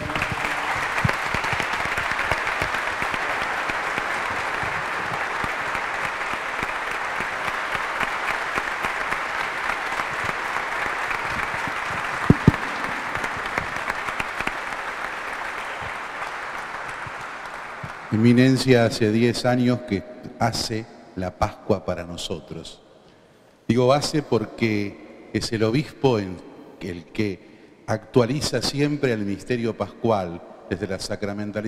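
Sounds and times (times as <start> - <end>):
audience applauding: 0.0 - 18.8
speech: 18.2 - 22.8, 23.7 - 31.6.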